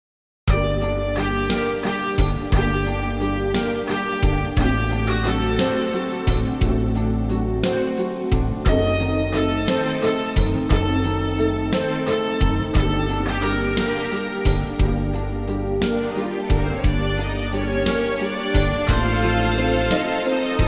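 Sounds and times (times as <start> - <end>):
modern piano backing track: 0.5 - 20.6.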